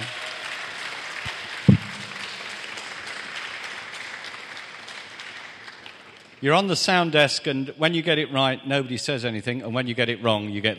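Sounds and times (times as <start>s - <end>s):
audience applause at a morning event: 0.0s - 6.4s
knock: 1.7s - 2.2s
speech: 6.4s - 10.7s.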